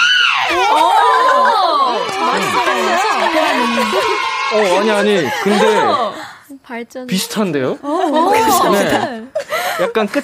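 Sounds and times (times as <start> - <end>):
other voices overlapping: 0.4 - 6.4
laughter: 0.5 - 6.4, 7.7 - 10.2
speech: 0.6 - 1.0, 2.6 - 10.2.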